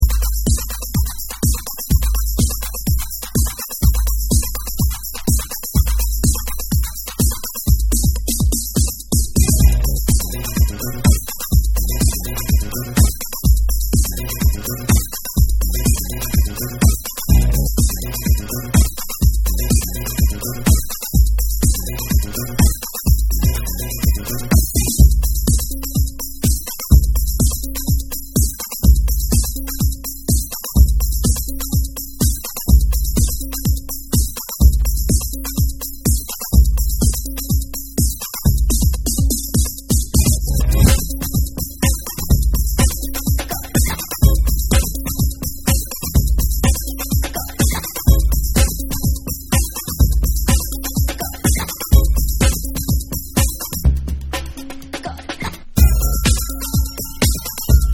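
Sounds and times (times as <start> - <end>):
instrumental music: 0.0 - 57.9.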